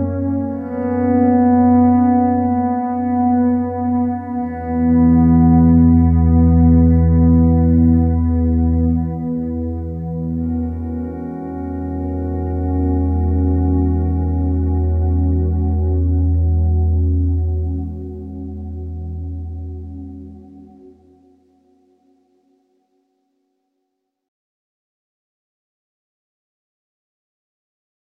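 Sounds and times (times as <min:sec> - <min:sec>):
electric guitar volume swells: 0:00.0 - 0:21.4.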